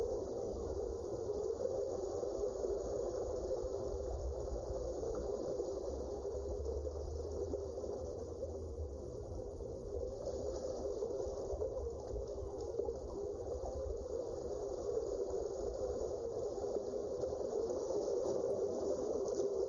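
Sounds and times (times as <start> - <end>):
underwater ambience: 0.0 - 19.6.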